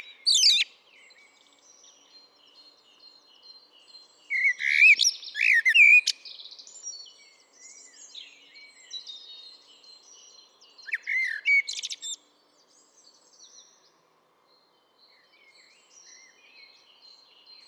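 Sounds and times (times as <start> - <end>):
common blackbird Turdus merula whistled song: 0.0 - 0.7, 4.3 - 9.3, 10.8 - 12.2.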